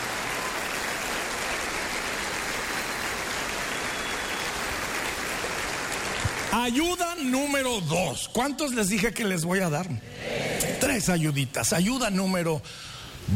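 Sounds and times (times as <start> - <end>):
audience applauding: 0.0 - 7.4
speech: 6.5 - 10.3, 10.9 - 13.3.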